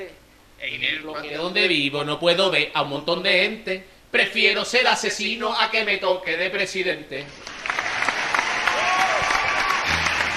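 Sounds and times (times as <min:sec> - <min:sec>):
speech: 0:00.0 - 0:07.5
applause sound effect: 0:07.4 - 0:10.3.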